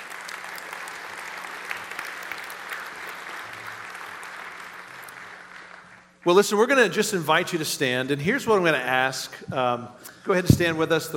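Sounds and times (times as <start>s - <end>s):
audience round of applause: 0.0s - 6.2s
speech: 6.2s - 11.1s.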